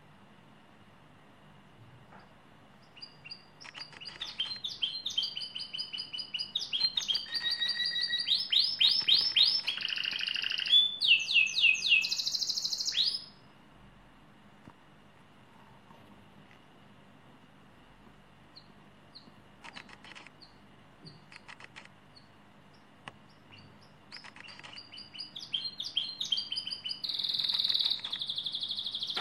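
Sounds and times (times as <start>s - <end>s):
lizard canary song: 2.2s - 13.4s, 22.1s - 29.1s.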